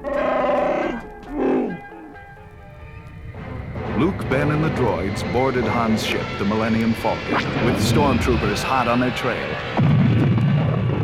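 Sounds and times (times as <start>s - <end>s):
Wookiee roaring: 0.0s - 2.2s
speech: 4.0s - 10.0s.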